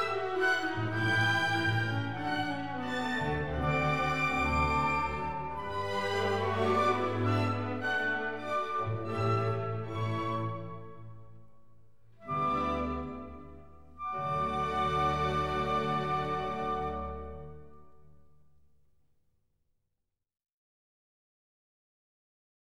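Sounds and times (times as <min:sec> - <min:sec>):
symphony orchestra playing a dance in D major: 0:00.0 - 0:11.2, 0:12.2 - 0:17.8.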